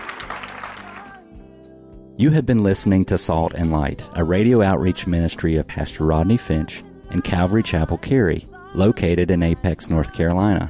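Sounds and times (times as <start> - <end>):
crowd clapping together: 0.0 - 1.2
speech: 2.2 - 10.6.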